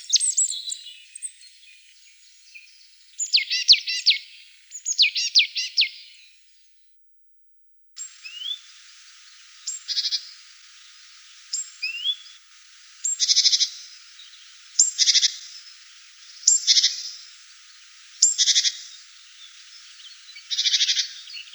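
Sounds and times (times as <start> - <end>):
marsh tit calling: 2.4 - 6.0, 8.0 - 21.5.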